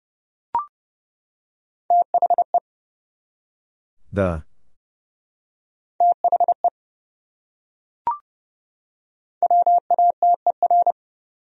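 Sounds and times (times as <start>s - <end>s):
Morse code beeps at 30 words per minute: 1.9s - 2.6s, 6.0s - 6.7s, 9.4s - 11.0s
speech: 4.1s - 4.5s.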